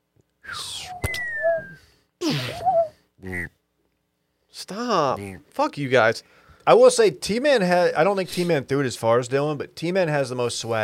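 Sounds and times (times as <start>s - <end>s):
voice imitating a vortex whistle in flight: 0.4s - 3.6s
speech: 2.3s - 3.6s, 4.7s - 10.8s.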